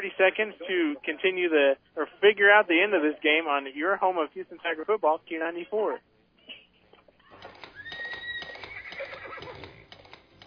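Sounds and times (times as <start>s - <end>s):
speech: 0.2s - 6.1s
horse neighing in a radio advertisement: 7.3s - 9.9s
horse hoofbeats clip-clopping: 7.4s - 10.4s.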